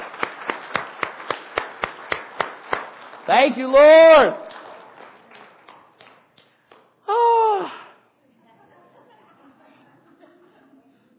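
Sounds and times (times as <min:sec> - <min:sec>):
hand clapping: 0:00.0 - 0:07.0
speech: 0:03.3 - 0:04.4
laughter: 0:08.2 - 0:11.1.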